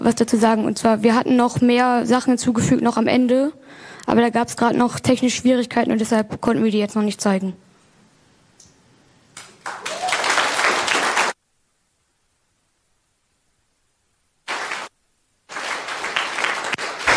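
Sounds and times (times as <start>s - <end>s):
speech: 0.0s - 7.6s
applause: 9.4s - 11.4s, 14.5s - 14.9s, 15.5s - 17.1s.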